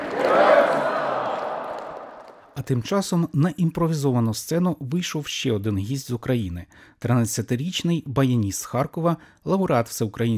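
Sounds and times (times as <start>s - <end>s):
audience applause at a memorial evening for Yevhen Konovalets in Lithuania: 0.0s - 2.6s
crowd cheering: 0.0s - 2.7s
speech: 2.6s - 10.3s.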